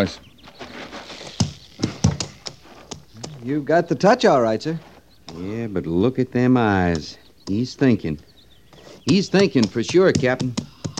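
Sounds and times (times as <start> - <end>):
speech: 0.0 - 0.2, 3.4 - 8.3, 9.0 - 10.7
horse hooves clopping on hard ground: 0.4 - 5.0, 9.1 - 10.9.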